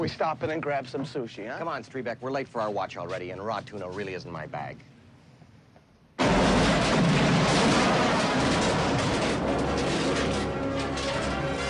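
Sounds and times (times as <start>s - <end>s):
speech: 0.0s - 4.9s
car exploding: 6.2s - 11.6s.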